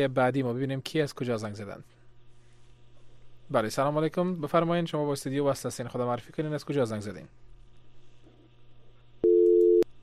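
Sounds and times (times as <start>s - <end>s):
speech: 0.0s - 2.0s, 3.5s - 7.4s
faint low hum: 0.0s - 10.0s
telephone busy tone after a call's line drops: 9.2s - 9.8s.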